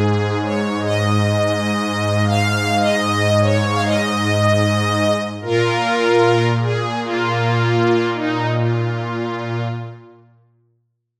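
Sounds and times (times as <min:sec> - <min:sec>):
FM synth strings: 0:00.0 - 0:10.2.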